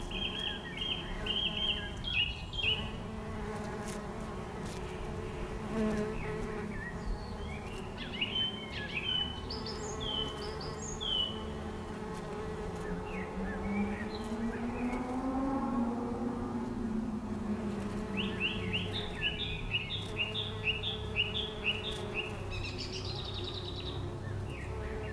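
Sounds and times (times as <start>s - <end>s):
bird chirps and twitters: 0.0s - 2.9s, 6.2s - 11.4s, 18.2s - 25.1s
bees buzzing: 0.0s - 25.1s.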